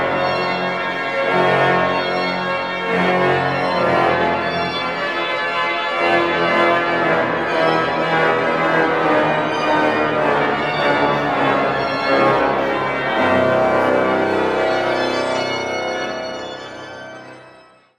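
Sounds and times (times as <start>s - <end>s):
organ improvisation: 0.0s - 17.5s.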